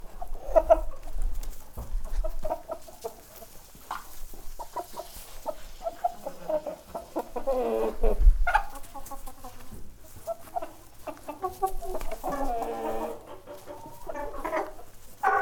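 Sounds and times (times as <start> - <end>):
chickens clucking and squawking in a barn: 0.0 - 15.4.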